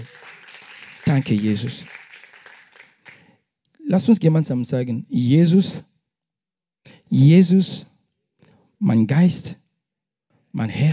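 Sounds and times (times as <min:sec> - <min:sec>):
audience applauding: 0:00.0 - 0:03.3
speech: 0:01.2 - 0:02.0, 0:03.9 - 0:05.9, 0:07.1 - 0:07.9, 0:08.8 - 0:09.6, 0:10.5 - 0:10.9.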